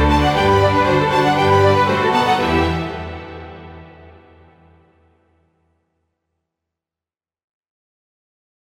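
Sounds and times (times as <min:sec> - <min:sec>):
classical flute concerto: 0:00.0 - 0:04.5.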